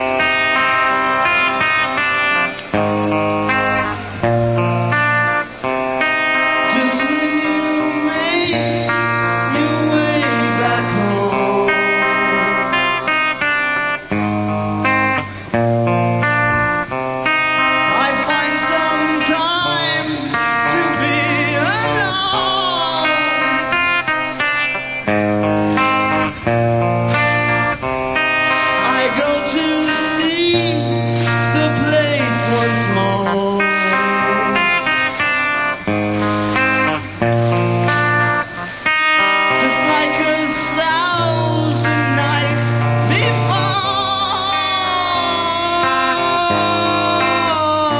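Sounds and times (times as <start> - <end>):
prison song: 0.0 - 47.9.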